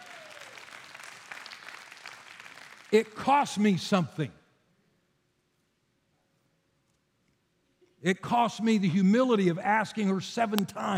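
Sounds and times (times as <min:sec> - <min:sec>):
audience applause: 0:00.0 - 0:03.2
speech: 0:02.9 - 0:04.4, 0:08.0 - 0:10.9.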